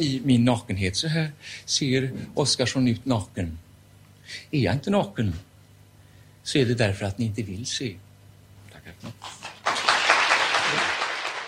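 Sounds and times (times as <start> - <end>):
speech: 0.0 - 3.6, 4.3 - 5.5, 6.4 - 8.1, 8.9 - 9.4
crowd applause: 9.2 - 11.4.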